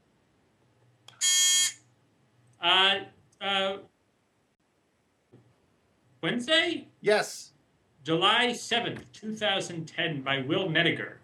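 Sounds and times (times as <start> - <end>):
buzzer sound effect: 1.2 - 1.8
speech: 2.6 - 3.2, 6.3 - 11.2.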